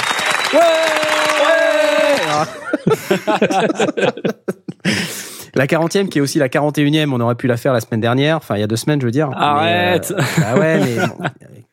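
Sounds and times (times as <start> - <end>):
applause: 0.0 - 2.6
speech: 0.5 - 1.0, 2.4 - 11.7
laughter: 1.9 - 5.1, 9.4 - 11.7.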